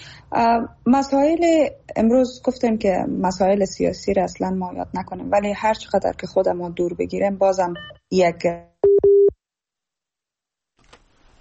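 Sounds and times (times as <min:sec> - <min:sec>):
speech: 0:00.3 - 0:08.7
short low beep of a cut-off telephone call: 0:08.8 - 0:09.3.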